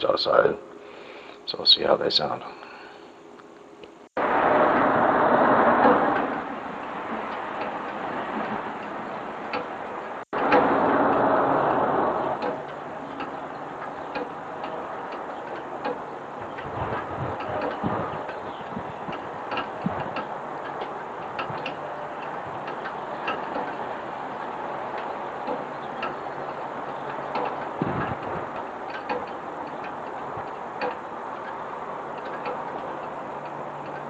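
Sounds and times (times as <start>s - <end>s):
speech: 0.0s - 0.7s, 1.5s - 2.6s
distant morning traffic: 0.0s - 34.0s.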